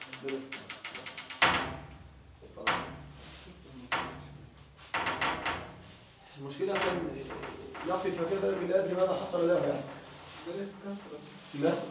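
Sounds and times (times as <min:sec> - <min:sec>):
door being closed: 0:00.1 - 0:06.1, 0:06.7 - 0:08.8
speech: 0:00.2 - 0:00.6, 0:06.5 - 0:09.9, 0:10.5 - 0:11.8.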